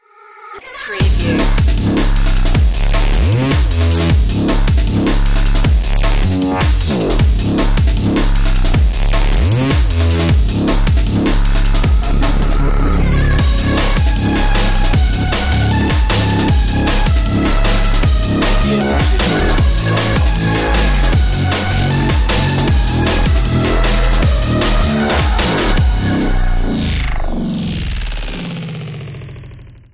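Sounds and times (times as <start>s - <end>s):
bass playing tricks: 1.0s - 29.7s.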